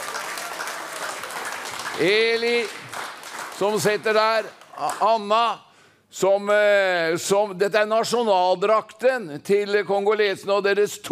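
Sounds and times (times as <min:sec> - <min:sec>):
audience applause: 0:00.0 - 0:05.0
speech: 0:02.0 - 0:03.0, 0:03.6 - 0:11.1.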